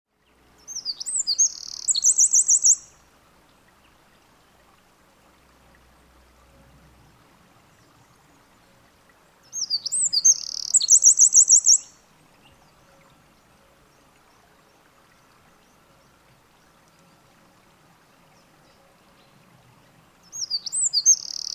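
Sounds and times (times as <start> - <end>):
faint background hiss: 0.1 - 21.5
Eurasian wren song: 0.8 - 2.9, 9.7 - 11.9, 20.4 - 21.5.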